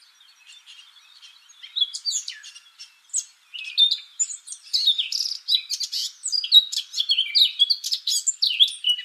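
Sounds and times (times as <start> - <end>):
Eurasian blackcap song: 0.0 - 9.0.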